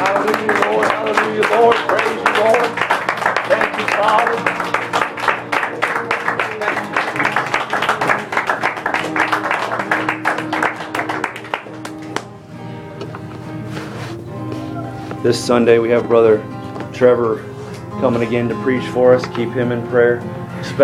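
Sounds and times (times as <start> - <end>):
crowd clapping: 0.0 - 12.4
speech: 15.3 - 20.8.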